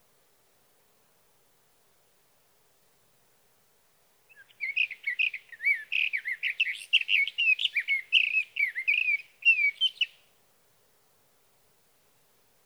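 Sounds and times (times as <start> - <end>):
sage thrasher warbling song: 4.3 - 10.2.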